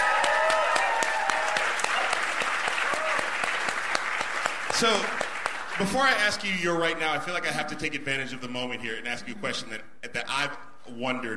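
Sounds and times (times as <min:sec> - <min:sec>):
audience applause: 0:00.0 - 0:06.2
speech: 0:04.8 - 0:05.2, 0:05.8 - 0:11.3.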